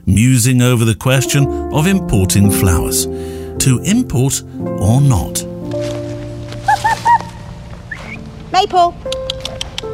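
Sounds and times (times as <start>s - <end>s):
speech: 0.1s - 6.0s, 8.6s - 9.3s
woodland ambience in Penn Wood: 1.2s - 9.9s
birdsong: 6.6s - 8.4s.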